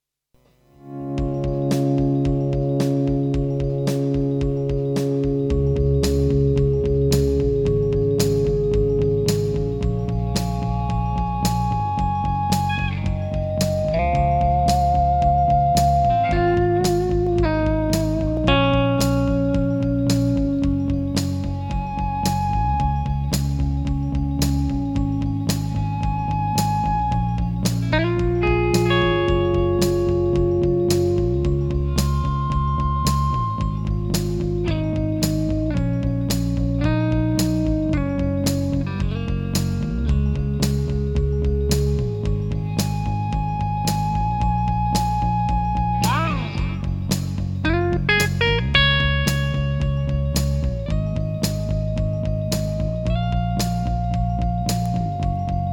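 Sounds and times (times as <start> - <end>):
Fernandes Monterrey Elite clean electric guitar: 0.4 - 55.7.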